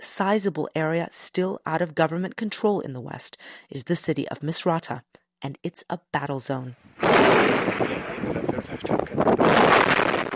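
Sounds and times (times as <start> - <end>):
speech: 0.1 - 9.6
rocket-propelled grenade fired at a vehicle in a street battle: 7.0 - 10.3.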